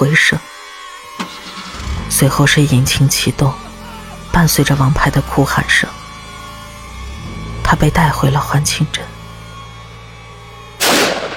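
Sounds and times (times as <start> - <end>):
speech: 0.0 - 0.5, 2.2 - 3.7, 4.4 - 6.0, 7.7 - 9.1
gunshot: 10.8 - 11.3.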